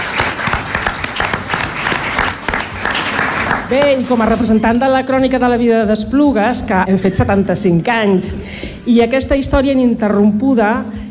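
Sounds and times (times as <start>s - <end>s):
audience applause: 0.0s - 4.0s
speech: 3.7s - 11.0s.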